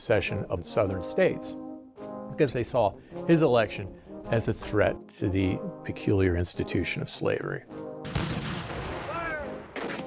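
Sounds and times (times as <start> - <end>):
speech: 0.0 - 1.6, 2.4 - 7.9
Confederate cannon fire on Fort Sumter: 8.0 - 10.0.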